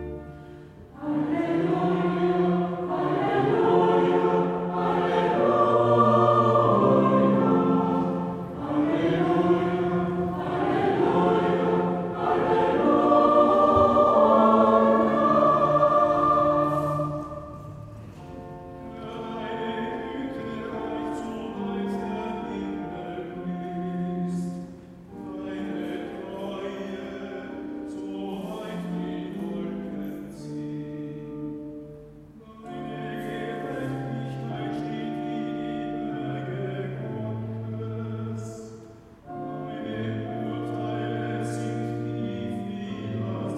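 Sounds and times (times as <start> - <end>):
choir singing interlude: 0.9 - 24.5, 32.5 - 43.5.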